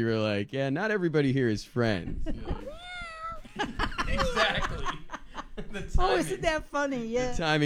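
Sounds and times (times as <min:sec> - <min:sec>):
speech: 0:00.0 - 0:02.7, 0:05.7 - 0:07.6
people laughing and talking loudly: 0:01.8 - 0:07.4
pet cat meowing: 0:02.6 - 0:03.5.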